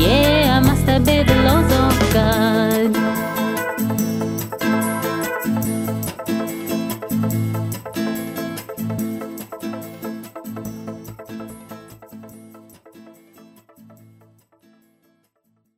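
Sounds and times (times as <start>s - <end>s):
song in English: 0.0s - 12.0s.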